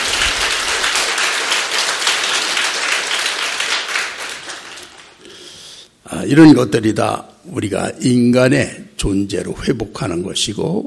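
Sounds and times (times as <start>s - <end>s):
church congregation applauding during a sermon: 0.0s - 5.3s
speech: 6.2s - 10.8s.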